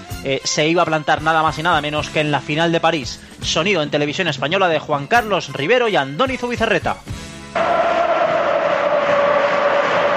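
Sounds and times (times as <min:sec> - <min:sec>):
speech: 0:00.2 - 0:07.8
football crowd at Mestalla stadium roaring during a Valencia match: 0:07.6 - 0:10.1.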